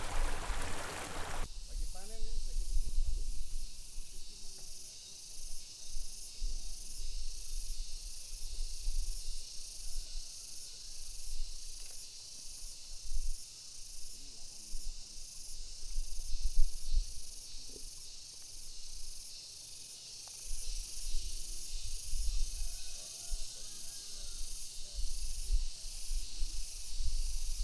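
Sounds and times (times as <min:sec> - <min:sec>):
rice field irrigation water flowing: 0:00.0 - 0:01.5
cicadas: 0:00.0 - 0:27.6.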